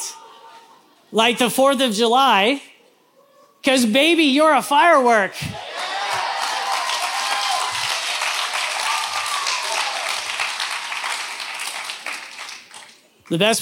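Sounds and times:
speech: 1.1 - 2.7, 3.6 - 5.6, 13.3 - 13.6
audience clapping: 5.7 - 13.4.

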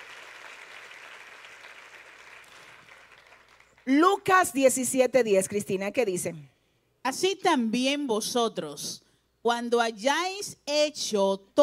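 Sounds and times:
crowd applause: 0.0 - 3.8
speech: 3.9 - 11.6.

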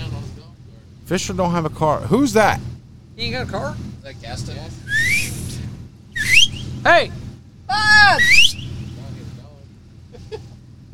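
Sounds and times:
low rumble: 0.0 - 10.9
speech: 1.1 - 5.4, 6.8 - 8.6
person whistling to flag people down: 4.9 - 5.4, 6.2 - 6.8, 8.1 - 8.7.

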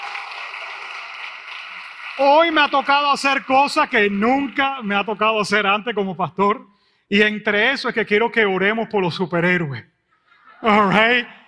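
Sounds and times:
audience applause: 0.0 - 5.2
speech: 2.2 - 9.9, 10.6 - 11.4
laughter: 10.2 - 11.4.

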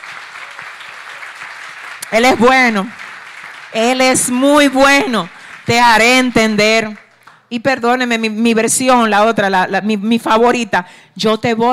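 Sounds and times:
audience applause: 0.0 - 7.3
speech: 2.1 - 3.0, 3.7 - 11.7.

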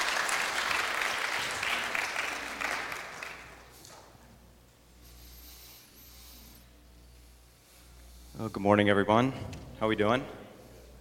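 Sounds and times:
crowd applauding: 0.0 - 3.7
speech: 8.4 - 10.4.

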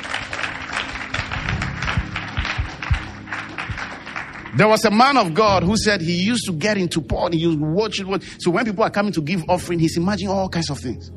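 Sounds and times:
hand clapping: 0.0 - 5.4
speech: 4.6 - 11.1.

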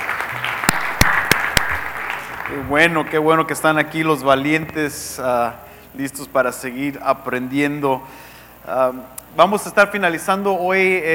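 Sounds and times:
audience applauding: 0.0 - 3.5
speech: 2.5 - 11.1.

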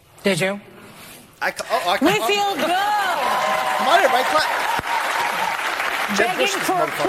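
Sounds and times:
speech: 0.2 - 0.7, 1.4 - 3.1, 3.8 - 4.8, 6.1 - 7.0
crowd applause: 2.6 - 7.0.

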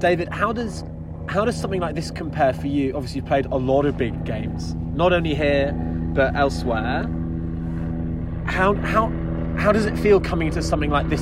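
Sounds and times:
speech: 0.0 - 7.2, 8.5 - 11.1
helicopters flying overhead: 0.0 - 11.1.

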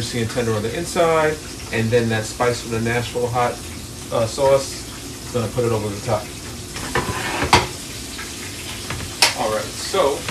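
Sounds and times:
speech: 0.0 - 6.4, 9.9 - 10.2
chicken frying in a pan: 0.0 - 10.2
utensil scraping and clattering: 6.8 - 7.8.

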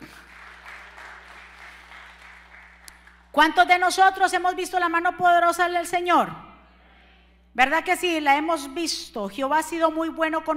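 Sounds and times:
audience applause: 0.0 - 3.2
speech: 3.4 - 6.4, 7.6 - 10.5.

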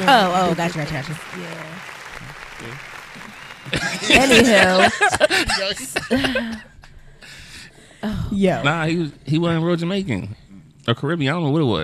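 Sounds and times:
clapping: 0.0 - 5.5
speech: 0.0 - 6.7, 8.0 - 11.8
laughter: 2.6 - 6.9.

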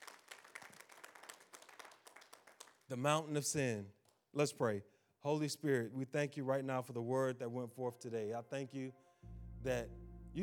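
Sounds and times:
audience hand clapping in praise: 0.0 - 3.1
speech: 2.9 - 10.4.

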